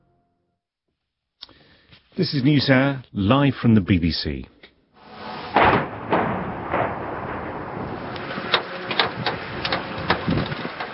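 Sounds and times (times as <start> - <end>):
speech: 2.2 - 4.5
missiles and drones striking Kyiv: 5.0 - 10.9.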